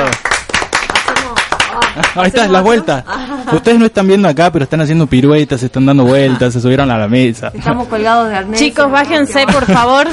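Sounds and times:
people clapping in studio: 0.0 - 2.8
laughter: 1.7 - 4.1, 5.9 - 6.9, 9.4 - 10.1
speech: 2.0 - 10.1.

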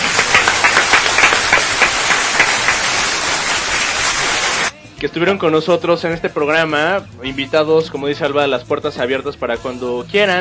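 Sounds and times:
audience applause: 0.0 - 4.7
speech: 5.0 - 10.3.

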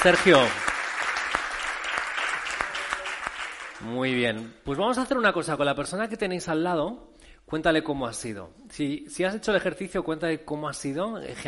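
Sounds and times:
speech: 0.0 - 0.6, 3.8 - 11.4
audience applause: 0.0 - 3.9.

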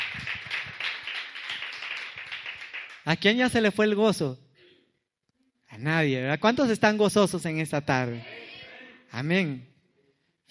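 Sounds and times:
audience clapping: 0.0 - 3.4
speech: 3.1 - 4.4, 5.8 - 8.3, 9.1 - 9.7.

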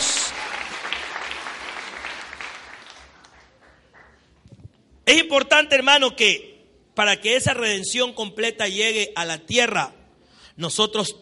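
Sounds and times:
loud applause: 0.0 - 4.2
speech: 5.1 - 10.0, 10.6 - 11.2.

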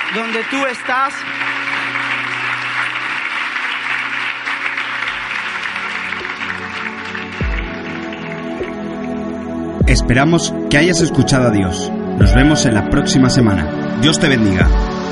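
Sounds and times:
audience applause: 0.0 - 9.2
speech: 0.1 - 1.6, 9.9 - 15.0.

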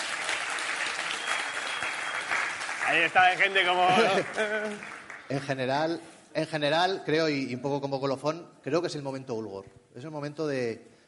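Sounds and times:
loud applause: 0.0 - 5.5
speech: 2.9 - 10.9
laughter: 3.6 - 4.8.

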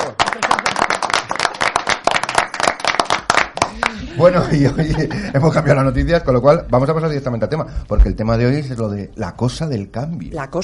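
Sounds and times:
studio audience applause: 0.0 - 4.9
laughter: 3.7 - 6.0
speech: 4.2 - 10.6.

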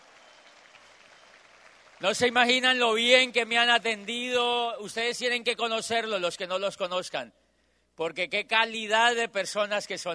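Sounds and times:
applause: 0.0 - 4.8
speech: 2.0 - 7.4, 8.0 - 10.1.

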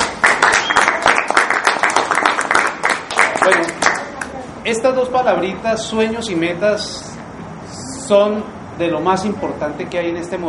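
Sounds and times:
welcoming applause: 0.0 - 4.3
speech: 4.7 - 7.1, 8.1 - 10.4.

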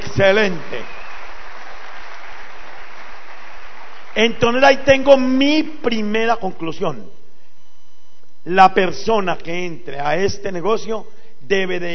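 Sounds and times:
audience applause: 0.0 - 4.7
speech: 0.2 - 0.8, 4.2 - 7.2, 8.4 - 11.9.

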